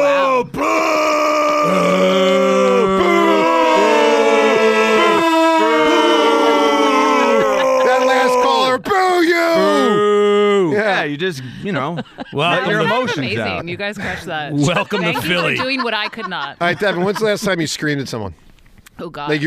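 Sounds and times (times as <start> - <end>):
crowd booing: 0.0 - 10.8
laughter: 5.0 - 8.8, 11.6 - 17.8
speech: 11.2 - 19.4.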